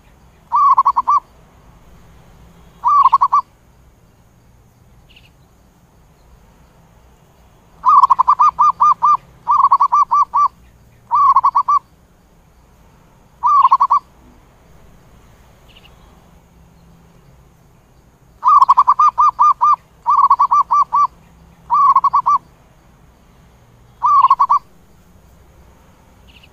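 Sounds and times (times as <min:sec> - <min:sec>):
zebra dove cooing: 0:00.5 - 0:01.2, 0:02.8 - 0:03.5, 0:07.8 - 0:11.8, 0:13.4 - 0:14.1, 0:18.4 - 0:22.4, 0:24.0 - 0:24.7.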